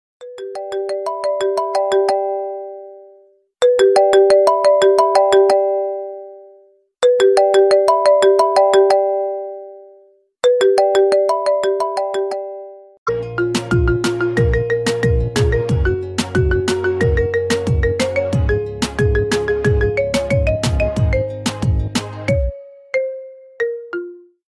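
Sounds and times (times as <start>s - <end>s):
ringtone: 0.2s - 24.4s.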